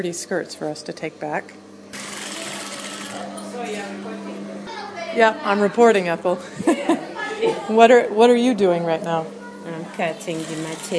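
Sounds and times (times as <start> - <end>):
speech: 0.0 - 1.7, 3.2 - 10.9
industrial sewing machines whirring while sewing skirts: 1.9 - 3.4, 10.1 - 10.9.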